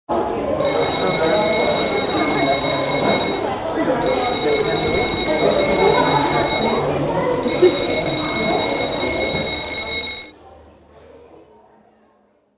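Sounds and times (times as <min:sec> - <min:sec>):
theatre bell ringing: 0:00.6 - 0:10.3.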